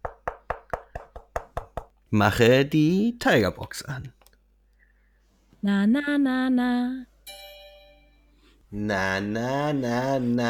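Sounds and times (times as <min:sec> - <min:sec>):
knocking on wood: 0:00.0 - 0:02.0
speech: 0:02.1 - 0:04.2, 0:05.6 - 0:07.4, 0:08.7 - 0:10.4.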